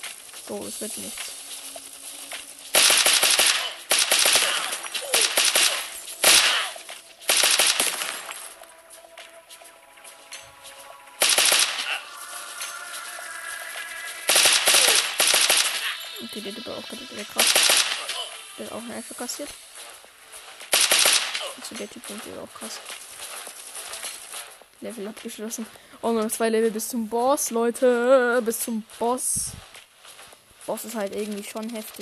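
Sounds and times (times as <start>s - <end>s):
speech: 0.5s - 1.4s, 16.4s - 18.0s, 18.6s - 19.7s, 21.6s - 23.0s, 24.8s - 29.7s, 30.7s - 31.9s
video game gunfire: 2.7s - 8.5s, 11.2s - 12.1s, 14.3s - 16.1s, 17.1s - 18.4s, 20.5s - 24.5s.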